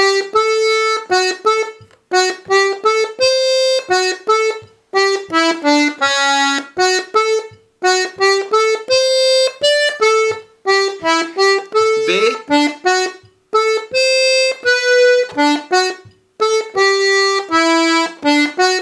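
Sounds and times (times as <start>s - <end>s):
Scottish paysanne folk dance tune second voice part: 0.0s - 18.7s.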